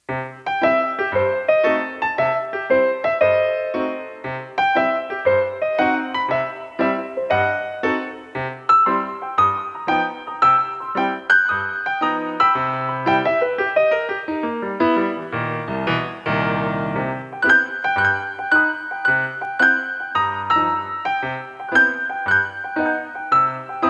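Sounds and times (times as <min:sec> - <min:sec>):
piano: 0:00.0 - 0:23.8.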